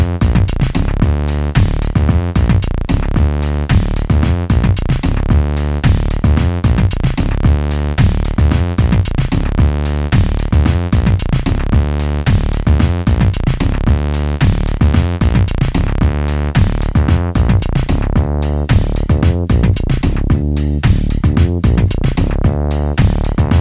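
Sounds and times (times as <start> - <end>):
MIDI music jam: 0.0 - 23.5.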